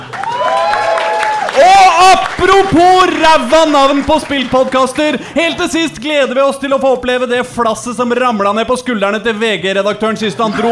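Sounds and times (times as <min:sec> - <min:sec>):
audience applause: 0:00.0 - 0:05.2
speech: 0:02.4 - 0:10.6.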